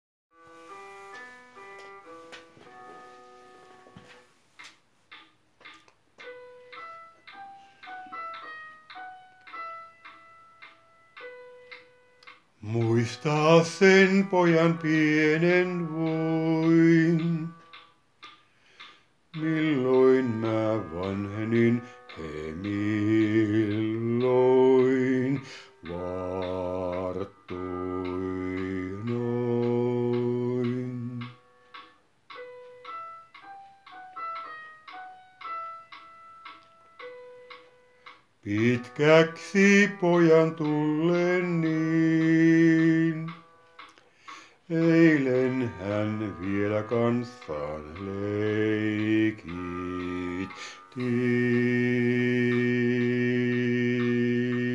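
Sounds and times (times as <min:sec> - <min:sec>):
bass voice singing: 0:12.6 - 0:17.6, 0:19.4 - 0:31.4, 0:38.4 - 0:43.4, 0:44.7 - 0:54.7.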